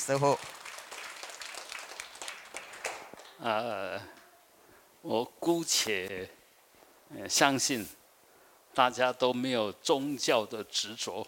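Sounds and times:
speech: 0.0s - 0.6s, 3.4s - 4.2s, 5.0s - 6.4s, 7.1s - 8.0s, 8.8s - 11.2s
audience applauding: 0.0s - 3.7s.

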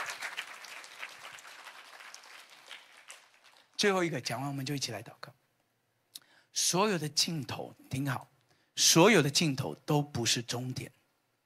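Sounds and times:
audience applause: 0.0s - 3.8s
speech: 3.8s - 5.4s, 6.7s - 11.0s.

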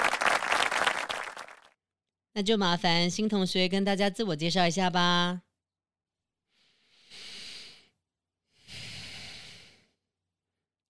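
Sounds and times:
classroom applause, many hands clapping: 0.0s - 1.7s
speech: 2.4s - 5.4s.

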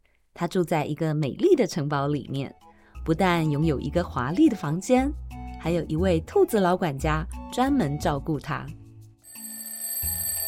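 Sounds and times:
speech: 0.4s - 8.8s
alarm clock ringing: 9.3s - 10.4s.

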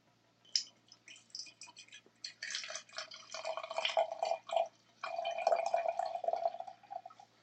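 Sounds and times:
milk pouring into a measuring cup: 0.6s - 7.2s.

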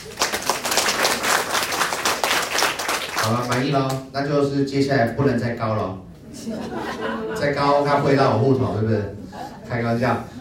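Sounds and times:
audience applause: 0.0s - 3.7s
speech: 3.2s - 10.3s
laughter: 6.2s - 10.4s.

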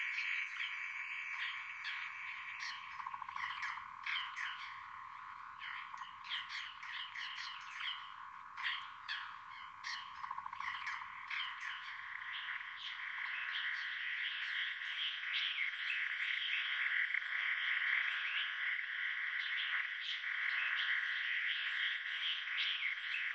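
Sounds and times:
frog chorus: 0.0s - 23.3s.

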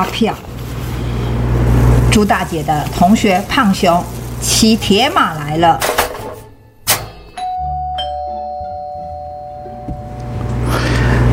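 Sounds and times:
speech: 0.0s - 0.5s, 2.1s - 5.9s
low rumbling noise: 0.0s - 5.8s, 9.7s - 11.3s
doorbell ringing: 6.6s - 10.6s.

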